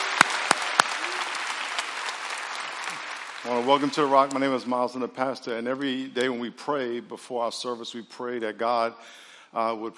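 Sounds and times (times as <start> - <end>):
audience applause at a church service: 0.0 - 4.7
speech: 3.4 - 9.9.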